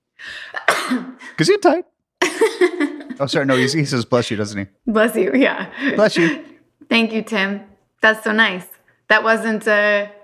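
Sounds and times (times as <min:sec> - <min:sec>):
person sneezing: 0:00.5 - 0:01.3
speech: 0:00.5 - 0:10.2
laughter: 0:02.2 - 0:04.0, 0:05.7 - 0:06.6.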